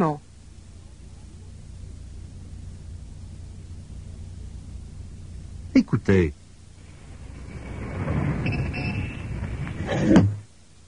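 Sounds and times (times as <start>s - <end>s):
speech: 0.0s - 0.2s, 5.8s - 6.4s
window being opened: 7.3s - 10.4s.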